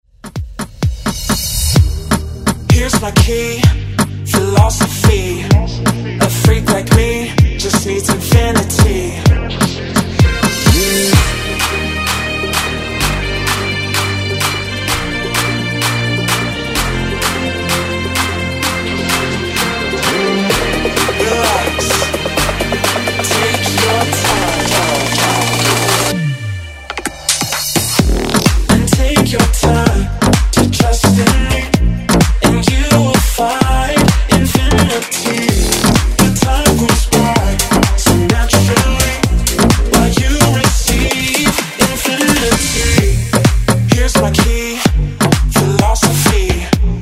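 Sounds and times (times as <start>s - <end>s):
afrobeat music: 0.2s - 47.0s.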